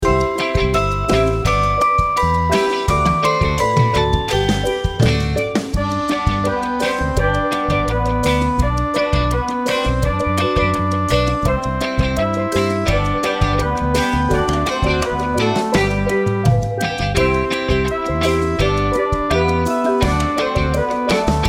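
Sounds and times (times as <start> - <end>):
flute: 0.0 - 21.4.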